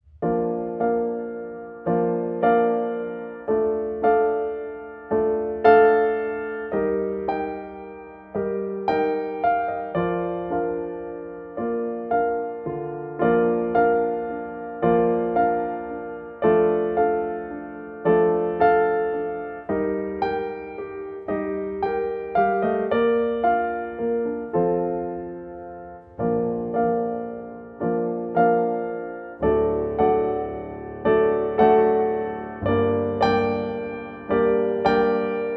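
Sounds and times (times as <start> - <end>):
piano tune: 0.0 - 35.5.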